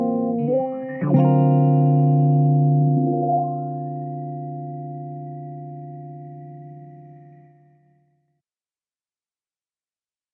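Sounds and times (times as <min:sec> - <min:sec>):
funky guitar riff in G minor: 0:00.0 - 0:07.4.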